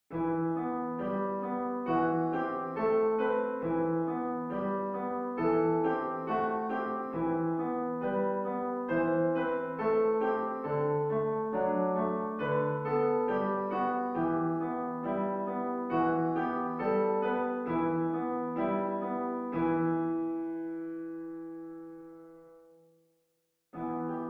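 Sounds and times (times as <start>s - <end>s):
piano: 0.1s - 24.2s.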